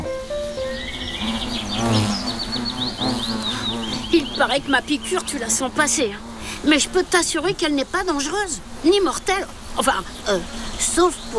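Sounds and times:
birds chirping: 0.0 - 11.3
hornet buzzing: 0.0 - 11.3
speech: 4.1 - 11.3.

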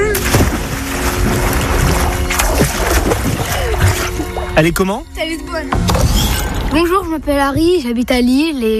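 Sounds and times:
water splashing in a swimming pool at a grandparents' home: 0.2 - 4.5
speech: 4.6 - 8.7.

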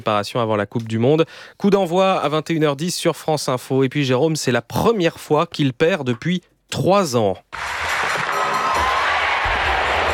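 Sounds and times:
speech: 0.0 - 7.8
stadium crowd in Stockholm crying out in shock: 7.7 - 10.1.

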